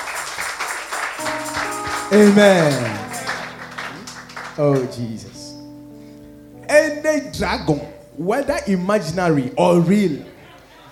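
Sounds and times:
hand clapping: 0:00.0 - 0:05.0
speech: 0:02.1 - 0:03.0, 0:04.6 - 0:05.4, 0:06.7 - 0:10.3.

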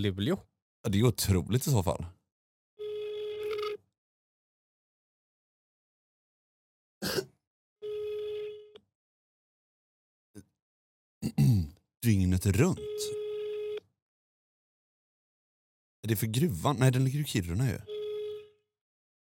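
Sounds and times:
speech: 0:00.0 - 0:02.2, 0:11.4 - 0:13.2, 0:16.0 - 0:18.0
phone line ringback tones: 0:02.8 - 0:03.8, 0:07.8 - 0:08.8, 0:12.8 - 0:13.9, 0:17.8 - 0:18.6.

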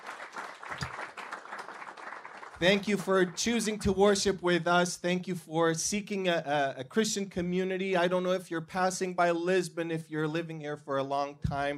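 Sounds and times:
audience applause: 0:00.0 - 0:03.6
speech: 0:02.6 - 0:11.7.

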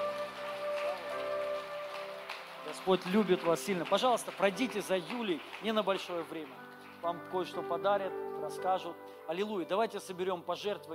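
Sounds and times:
audience applause: 0:00.0 - 0:07.0
speech: 0:02.7 - 0:10.9.

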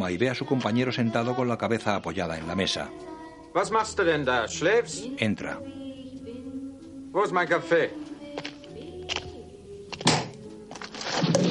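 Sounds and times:
film dialogue: 0:00.0 - 0:09.5
speech: 0:00.1 - 0:05.9, 0:07.1 - 0:08.1
gunshot in a 1961 World War II adventure film: 0:10.1 - 0:10.3, 0:11.2 - 0:11.4.

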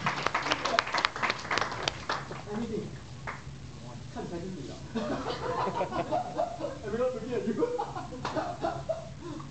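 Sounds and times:
audience applause: 0:00.0 - 0:03.4
laughter: 0:04.9 - 0:09.2.

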